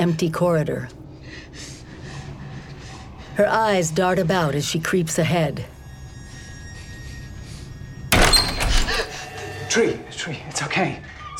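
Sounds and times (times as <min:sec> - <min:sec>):
speech: 0:00.0 - 0:01.8, 0:03.4 - 0:05.8, 0:09.8 - 0:11.3
door thunk: 0:08.1 - 0:09.1.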